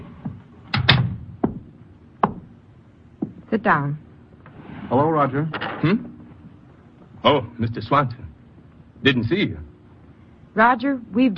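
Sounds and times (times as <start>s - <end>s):
door being shut: 0.7s - 1.3s
speech: 3.5s - 4.0s, 4.9s - 6.1s, 7.2s - 8.2s, 9.0s - 9.7s, 10.6s - 11.3s.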